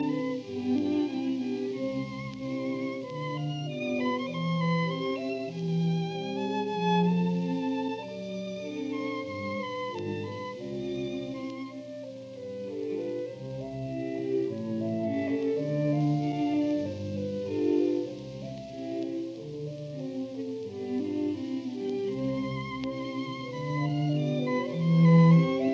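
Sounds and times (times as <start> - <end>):
chamber octet playing a slow movement: 0.0 - 25.7.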